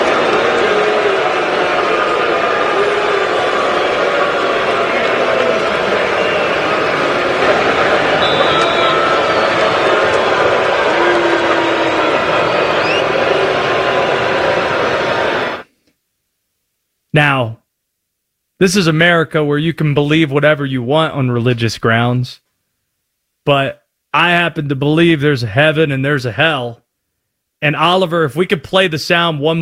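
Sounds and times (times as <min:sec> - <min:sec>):
stadium crowd booing a returning quarterback: 0:00.0 - 0:15.6
speech: 0:18.6 - 0:22.4, 0:23.4 - 0:26.8, 0:27.6 - 0:29.6.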